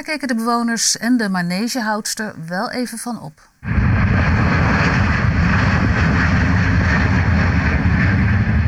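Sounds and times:
speech: 0.1s - 4.4s
airplane flying overhead: 3.7s - 8.6s.

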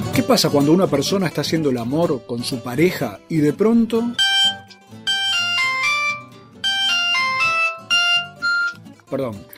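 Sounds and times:
speech: 0.2s - 4.3s, 9.1s - 9.5s
mobile phone ringing with a melodic electronic tune: 4.2s - 8.8s.

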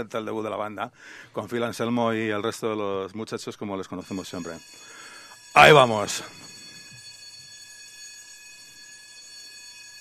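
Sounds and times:
speech: 0.0s - 5.0s, 5.6s - 6.4s
alarm bell ringing: 3.7s - 9.9s.

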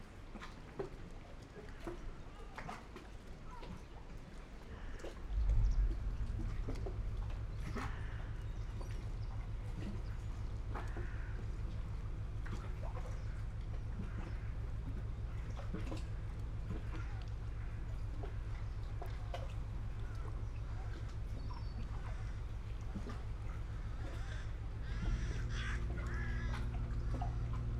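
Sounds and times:
gulls calling: 1.6s - 27.7s.

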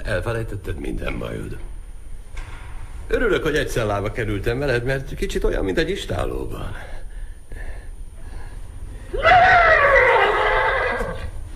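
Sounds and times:
speech: 0.1s - 1.8s, 3.1s - 7.0s
thirsty horse neighing: 9.2s - 11.4s.

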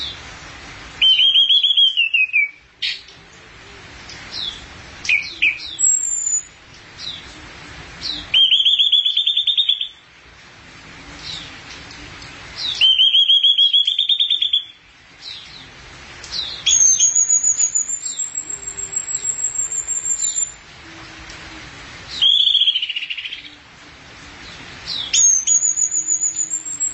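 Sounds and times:
thrush singing: 1.0s - 3.1s, 4.1s - 7.4s, 8.0s - 10.0s, 12.6s - 15.7s, 16.3s - 20.6s, 22.1s - 23.6s, 24.4s - 26.9s.

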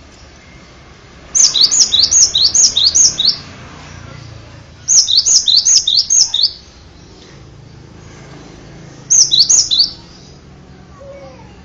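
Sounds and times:
bird song: 1.3s - 3.5s, 4.9s - 6.7s, 9.1s - 10.4s.

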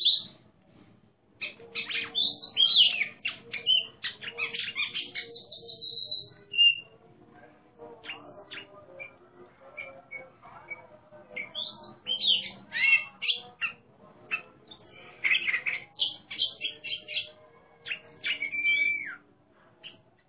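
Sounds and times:
Oriental magpie-robin competition song of varied whistles, chirps and warbled phrases: 0.0s - 0.4s, 1.4s - 7.0s, 7.9s - 20.2s.

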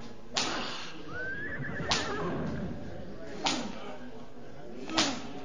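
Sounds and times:
whip-like cracks: 0.3s - 0.9s, 3.4s - 3.8s, 4.9s - 5.3s
horse whinnying: 1.1s - 3.0s.

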